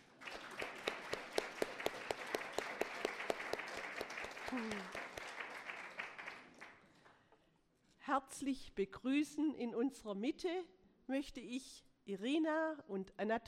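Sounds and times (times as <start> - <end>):
audience applause for mothers: 0.0 - 6.8
speech: 4.5 - 5.0, 8.2 - 13.4.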